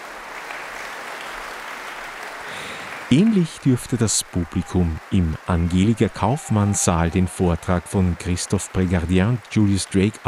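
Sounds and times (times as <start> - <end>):
audience applause: 0.0 - 10.2
laughter: 2.4 - 10.2
speech: 3.1 - 10.2.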